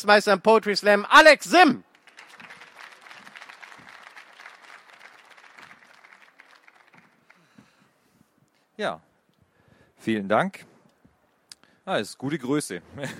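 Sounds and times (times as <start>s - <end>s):
speech: 0.0s - 1.9s, 8.8s - 9.1s, 10.0s - 10.7s, 11.9s - 13.1s
big round of applause: 1.9s - 7.7s.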